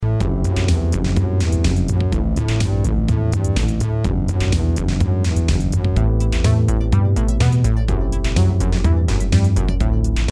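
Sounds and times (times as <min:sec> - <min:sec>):
dance music: 0:00.0 - 0:10.2.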